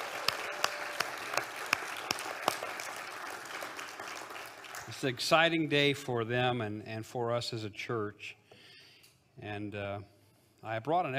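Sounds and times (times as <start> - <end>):
audience applause: 0.0 - 5.2
speech: 5.0 - 8.4, 9.4 - 11.1.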